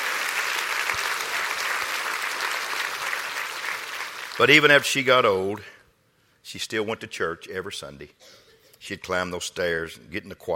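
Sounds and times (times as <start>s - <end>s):
audience clapping: 0.0s - 5.0s
speech: 4.4s - 5.7s, 6.5s - 10.5s.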